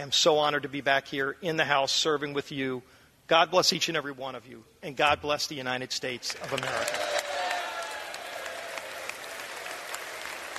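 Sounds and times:
speech: 0:00.0 - 0:07.2
standing ovation applause: 0:06.3 - 0:10.5.

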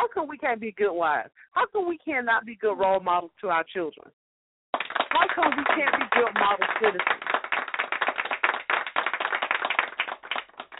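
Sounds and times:
speech: 0:00.2 - 0:04.2, 0:05.1 - 0:07.2
hand clapping: 0:04.8 - 0:10.7.

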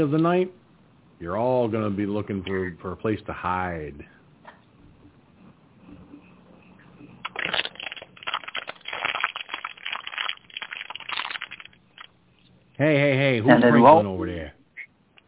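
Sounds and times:
speech: 0:00.0 - 0:00.6, 0:01.2 - 0:04.2, 0:12.8 - 0:14.5
plastic water bottle being crunched and crinkled: 0:07.2 - 0:12.1.

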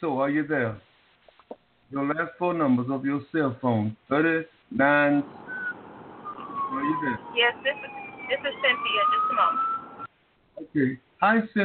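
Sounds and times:
speech: 0:00.0 - 0:00.9, 0:01.5 - 0:05.4, 0:06.7 - 0:09.7, 0:10.6 - 0:11.6
vehicle alarm siren: 0:05.2 - 0:10.1.

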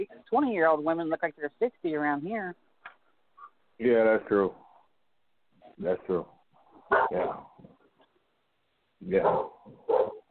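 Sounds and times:
speech: 0:00.0 - 0:02.6, 0:03.8 - 0:04.6, 0:05.8 - 0:07.7, 0:09.0 - 0:10.2
dog barking: 0:06.9 - 0:07.5, 0:09.0 - 0:10.3.

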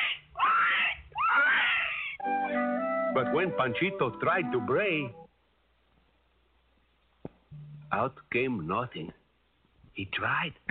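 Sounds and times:
pig squealing: 0:00.0 - 0:02.2
speech: 0:03.2 - 0:05.2, 0:07.9 - 0:09.2, 0:10.0 - 0:10.6.

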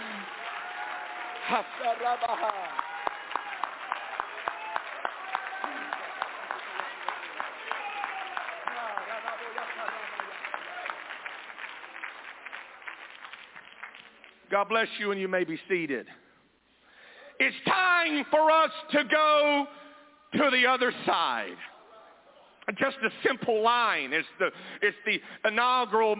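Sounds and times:
audience clapping hands: 0:00.0 - 0:14.7
speech: 0:01.5 - 0:02.8, 0:14.5 - 0:16.2, 0:17.4 - 0:21.7, 0:22.7 - 0:26.1.

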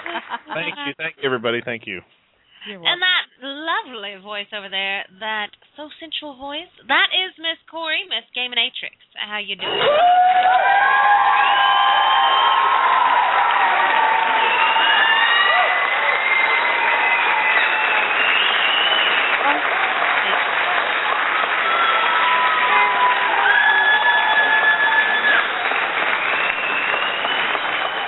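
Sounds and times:
audience applause and cheering: 0:00.0 - 0:00.9, 0:09.6 - 0:28.0
laughter: 0:00.0 - 0:01.7
speech: 0:00.3 - 0:12.0.

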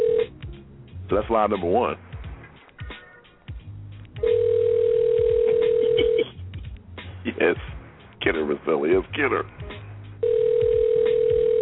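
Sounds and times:
phone ringing on the line: 0:00.0 - 0:00.3, 0:04.2 - 0:06.3, 0:10.2 - 0:11.6
speech: 0:01.1 - 0:02.1, 0:08.3 - 0:09.6.

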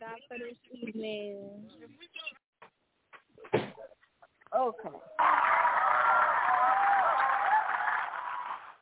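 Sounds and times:
speech: 0:00.2 - 0:02.3
audience clapping: 0:05.2 - 0:08.4.

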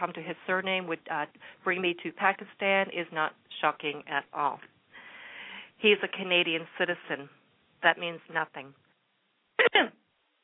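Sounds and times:
speech: 0:00.0 - 0:04.7, 0:05.8 - 0:08.8, 0:09.6 - 0:10.0
person clearing throat: 0:09.6 - 0:10.0.

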